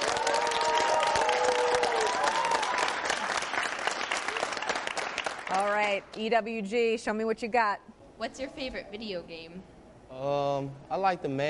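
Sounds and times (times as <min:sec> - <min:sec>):
round of applause from audience: 0:00.0 - 0:06.0
speech: 0:05.9 - 0:11.4.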